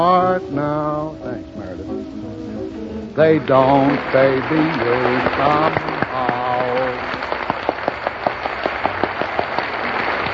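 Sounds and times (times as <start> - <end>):
speech: 0.0 - 1.3, 3.2 - 5.9
audience applause: 3.4 - 10.3.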